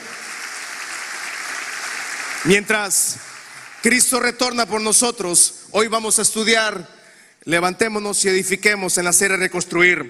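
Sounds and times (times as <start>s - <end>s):
audience applause: 0.0s - 4.5s
speech: 2.4s - 10.0s.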